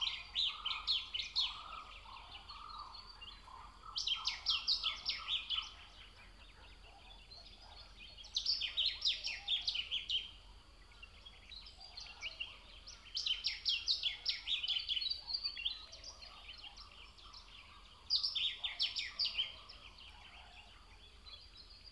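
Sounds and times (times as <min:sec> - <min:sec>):
bird singing by the pond: 0:00.0 - 0:21.9
nature ambience: 0:00.0 - 0:21.9.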